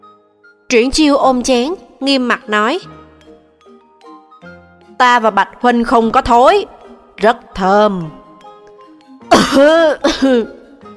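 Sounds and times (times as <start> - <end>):
speech: 0.7 - 3.0, 5.0 - 8.2, 9.5 - 10.6
choking cough: 9.3 - 10.6.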